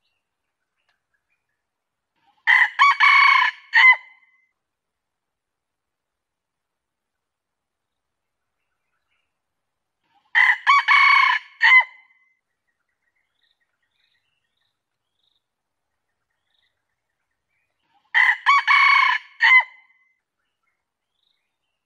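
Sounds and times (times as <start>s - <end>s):
junglefowl crowing: 2.4s - 4.1s, 10.3s - 12.0s, 18.1s - 19.8s.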